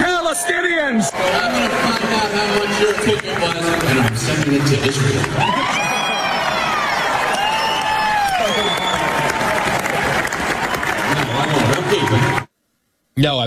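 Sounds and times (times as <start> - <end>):
crowd cheering: 0.0 - 12.5
speech: 0.4 - 5.9, 13.2 - 13.4.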